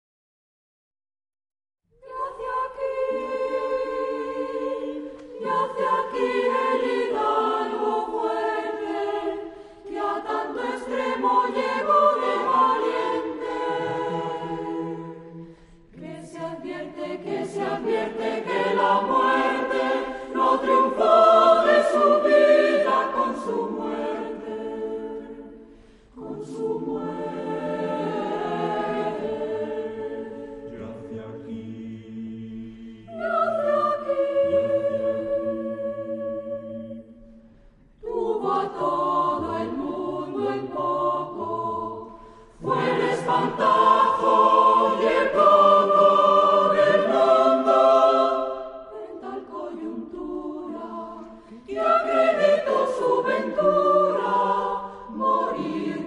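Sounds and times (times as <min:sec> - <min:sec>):
choir singing: 0:01.9 - 0:56.0.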